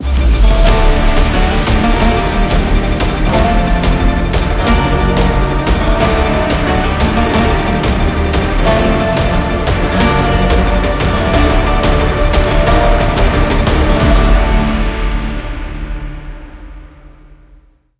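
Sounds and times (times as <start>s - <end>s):
mega win sound: 0.0s - 16.2s.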